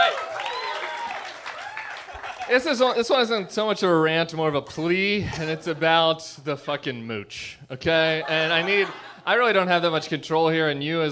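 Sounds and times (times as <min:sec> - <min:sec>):
audience applause greeting a returning guest: 0:00.0 - 0:03.0
laughter: 0:02.0 - 0:02.8, 0:05.1 - 0:06.1, 0:08.0 - 0:09.9
speech: 0:02.5 - 0:11.0.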